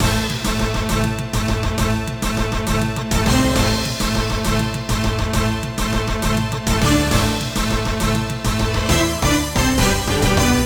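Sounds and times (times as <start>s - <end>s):
background music: 0.0s - 10.6s.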